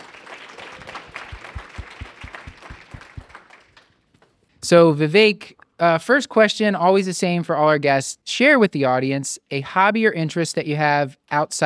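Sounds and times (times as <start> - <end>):
round of applause from a small crowd: 0.0 - 4.4
speech: 4.7 - 11.6.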